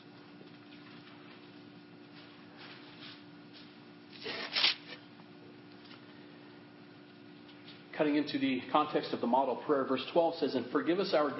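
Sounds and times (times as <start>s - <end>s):
pages of a Bible rifled through quickly to Matthew 6: 4.1s - 5.0s
speech: 8.0s - 11.3s.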